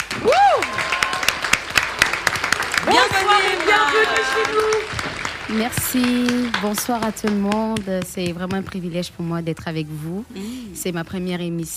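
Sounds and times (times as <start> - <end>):
TV show audience clapping for a guest: 0.0 - 8.4
speech: 5.5 - 11.7.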